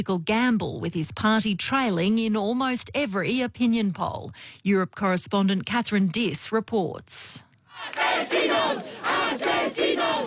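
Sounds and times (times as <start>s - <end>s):
speech: 0.0s - 10.2s
protesters yelling in Madrid: 7.8s - 10.2s.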